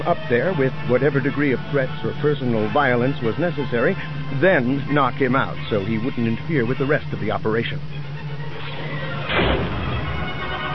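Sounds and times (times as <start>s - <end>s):
speech: 0.0s - 8.1s
explosion tearing apart a ship's cargo hold: 9.3s - 10.2s.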